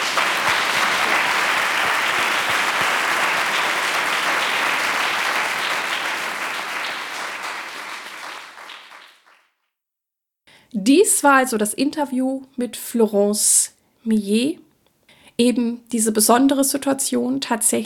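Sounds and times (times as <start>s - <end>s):
audience applause: 0.0s - 9.4s
speech: 10.9s - 14.6s, 15.4s - 17.8s.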